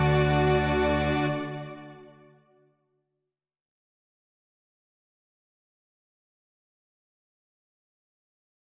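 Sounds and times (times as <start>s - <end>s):
musical accompaniment only: 0.0s - 2.6s.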